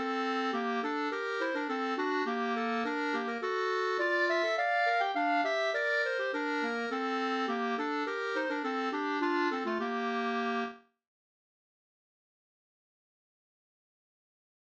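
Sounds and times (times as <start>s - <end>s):
polska folk dance tune: 0.0s - 10.8s.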